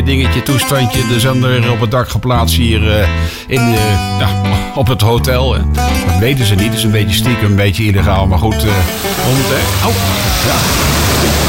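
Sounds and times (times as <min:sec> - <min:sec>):
speech: 0:00.1 - 0:11.4
sea waves heard from a hotel rooftop: 0:08.8 - 0:11.4.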